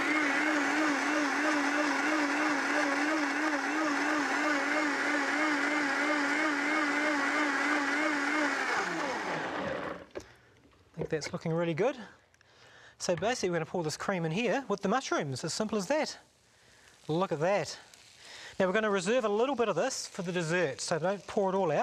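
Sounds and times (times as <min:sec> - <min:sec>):
blender blending cashew cream at high speed: 0:00.0 - 0:10.2
speech: 0:11.1 - 0:12.2, 0:13.0 - 0:16.3, 0:17.1 - 0:17.9, 0:18.6 - 0:21.8.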